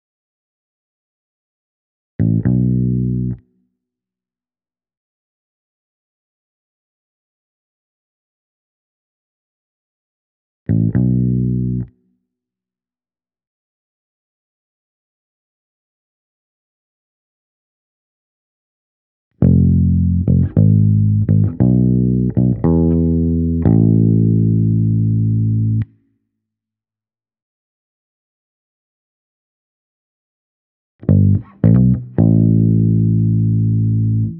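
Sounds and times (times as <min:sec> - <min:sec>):
clean bass guitar: 0:02.2 - 0:03.4, 0:10.7 - 0:11.9, 0:19.4 - 0:25.9, 0:31.0 - 0:34.3.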